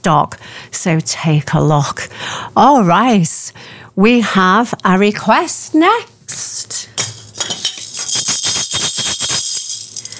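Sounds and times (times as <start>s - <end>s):
speech: 0.0s - 7.1s
maracas shaking: 7.0s - 10.1s.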